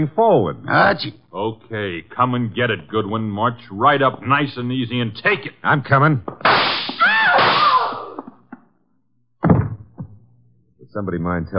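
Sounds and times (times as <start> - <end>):
speech: 0.0 - 6.7, 10.9 - 11.5
gunshot in a radio drama: 6.4 - 8.2.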